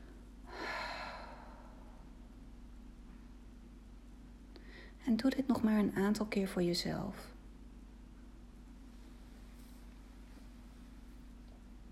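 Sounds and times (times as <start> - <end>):
slow breath out during a guided relaxation exercise: 0.5 - 2.0
speech: 5.0 - 7.4.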